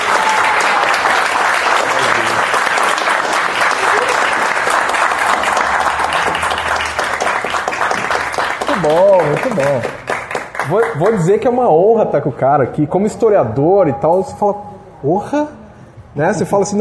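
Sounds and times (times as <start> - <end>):
audience applause: 0.0 - 11.4
speech: 10.7 - 15.6, 16.2 - 16.8.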